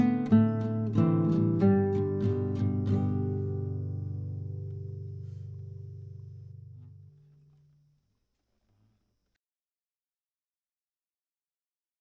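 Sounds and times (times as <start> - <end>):
slow guitar playing without metronome: 0.0 - 8.0.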